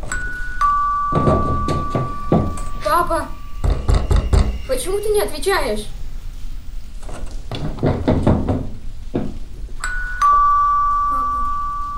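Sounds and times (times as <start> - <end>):
doorbell ringing at a house door: 0.0 - 5.3, 9.8 - 11.9
dull knocking and thumps: 1.1 - 2.6, 3.6 - 4.6, 7.1 - 9.4
speech: 4.7 - 6.0.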